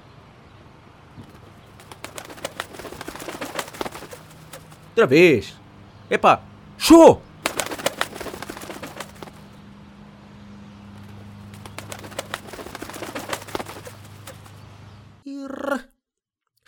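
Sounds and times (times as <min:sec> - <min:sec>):
pigeons' clattering taps and wing flutters: 0:01.2 - 0:04.9, 0:07.4 - 0:09.6, 0:11.0 - 0:14.6
pigeons cooing: 0:01.3 - 0:04.9, 0:07.5 - 0:09.5, 0:11.6 - 0:14.6
speech: 0:05.0 - 0:07.2.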